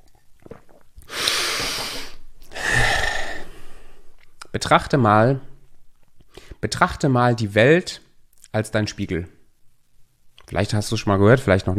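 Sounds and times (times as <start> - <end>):
speaker drawing deep breaths between sentences: 1.1 - 4.2
speech: 4.6 - 5.5, 6.6 - 9.4, 10.5 - 11.7.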